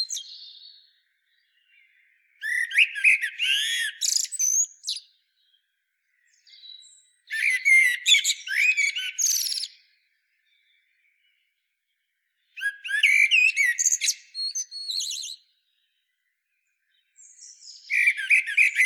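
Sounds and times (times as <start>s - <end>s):
common blackbird twittering: 0.0s - 5.1s, 6.2s - 9.8s, 12.6s - 15.4s, 17.2s - 18.8s.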